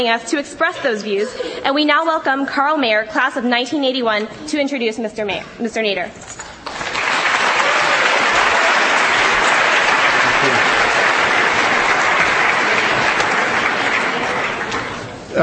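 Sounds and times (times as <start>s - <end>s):
speech: 0.0s - 6.4s
large university audience applause welcoming Ralph Nader: 6.6s - 15.2s.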